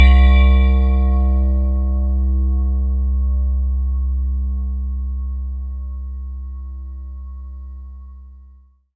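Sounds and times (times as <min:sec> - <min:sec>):
synth line: 0:00.0 - 0:05.0.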